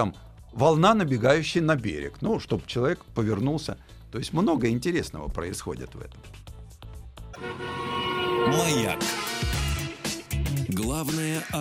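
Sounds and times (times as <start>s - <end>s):
speech: 0.0s - 6.5s, 7.4s - 9.5s, 10.8s - 11.5s
early car horn honking: 7.4s - 10.3s.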